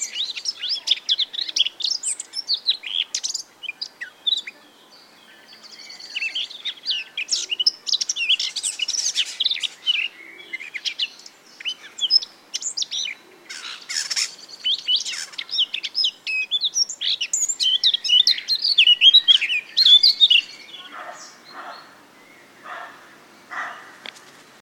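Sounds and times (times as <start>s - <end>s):
background hiss: 0.0s - 24.5s
Eurasian blackcap singing: 6.1s - 24.0s.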